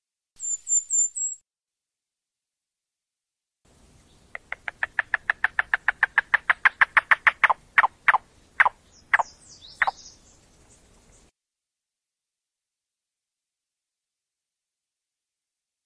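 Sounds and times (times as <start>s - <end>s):
Yellow-billed Cuckoo call of hollow knocking notes: 4.3s - 10.0s.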